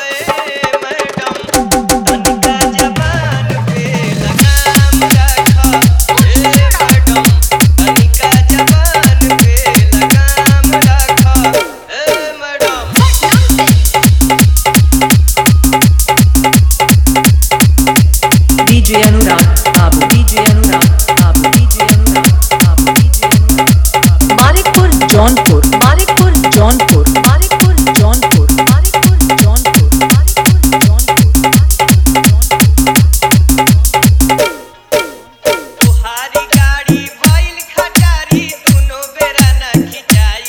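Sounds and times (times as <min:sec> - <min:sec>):
Bhojpuri dholak bass mix: 0:00.0 - 0:40.4.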